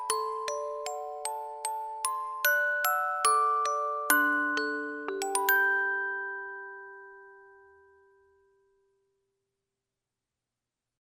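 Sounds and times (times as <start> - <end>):
orchestral lullaby: 0.0 - 8.3.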